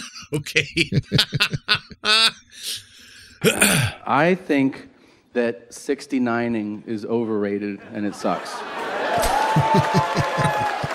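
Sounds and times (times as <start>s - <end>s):
laughter: 0.0s - 2.4s, 7.8s - 10.9s
speech: 0.3s - 8.7s, 9.5s - 10.4s
scattered audience clapping at stand-up show: 9.0s - 10.9s.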